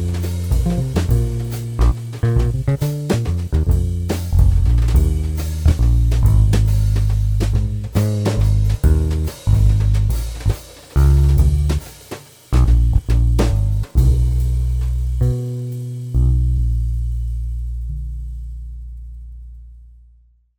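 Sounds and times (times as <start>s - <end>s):
jazz waltz accompaniment only: 0.0s - 11.8s, 12.6s - 16.8s.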